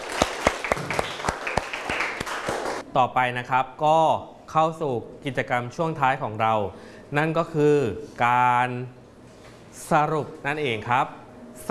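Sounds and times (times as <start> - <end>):
small classroom group clapping: 0.0 - 2.8
speech: 2.9 - 9.0, 9.8 - 11.6.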